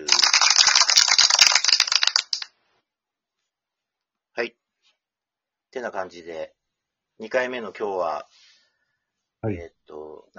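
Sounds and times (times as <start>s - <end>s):
applause sound effect: 0.0s - 2.5s
speech: 4.4s - 4.6s, 5.7s - 6.6s, 7.2s - 8.4s, 9.4s - 10.3s.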